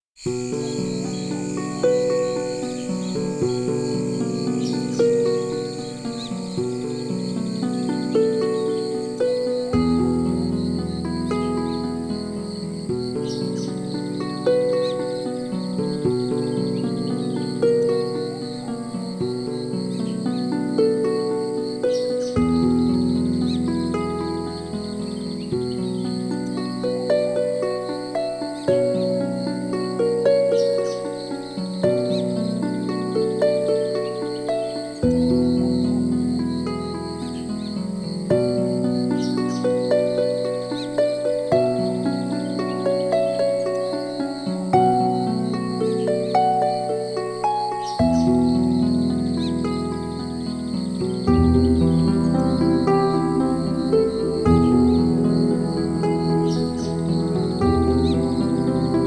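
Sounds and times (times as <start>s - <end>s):
nature sounds in a night forest: 0.0s - 59.0s.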